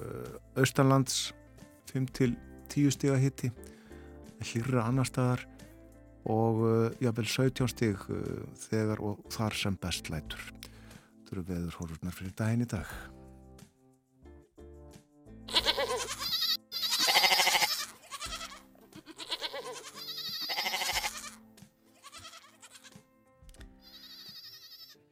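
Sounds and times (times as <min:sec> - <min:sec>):
speech: 0:00.6 - 0:03.7, 0:04.4 - 0:05.5, 0:06.2 - 0:10.6, 0:11.3 - 0:13.2
goats bleating: 0:15.5 - 0:21.4, 0:22.0 - 0:23.0, 0:23.8 - 0:25.0.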